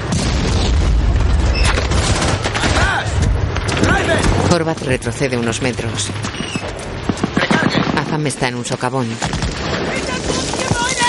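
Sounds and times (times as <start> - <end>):
battle gunfire in a World War II war film: 0.0 - 4.9, 6.0 - 11.0
bazooka shot hitting a tank and booming blasts: 0.0 - 11.0
speech: 4.5 - 6.8, 8.2 - 10.1
people shouting: 9.9 - 11.0.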